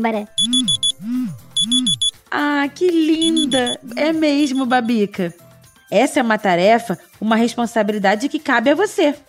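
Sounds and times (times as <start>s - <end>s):
speech: 0.0s - 9.2s
phone alarm going off: 0.4s - 2.2s, 3.2s - 4.7s.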